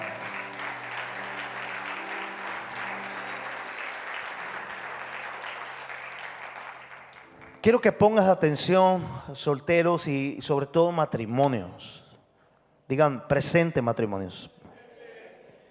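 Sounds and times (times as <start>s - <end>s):
audience applause: 0.0s - 7.6s
speech: 7.6s - 12.0s, 12.9s - 14.6s.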